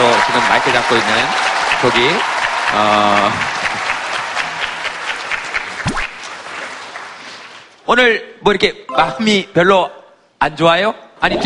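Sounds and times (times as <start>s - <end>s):
crowd applauding: 0.0s - 7.7s
speech: 0.5s - 3.6s, 7.9s - 11.4s.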